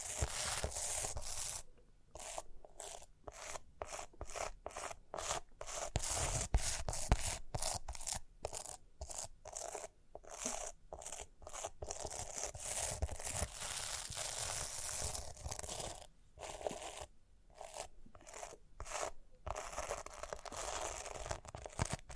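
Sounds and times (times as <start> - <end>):
rhinestone-covered surface being scratched and brushed: 0.0 - 22.1.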